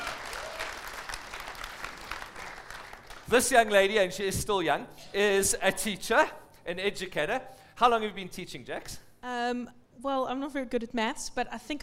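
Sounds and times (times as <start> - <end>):
audience applause welcoming contestants onto a show: 0.0 - 4.0
speech: 3.3 - 11.8.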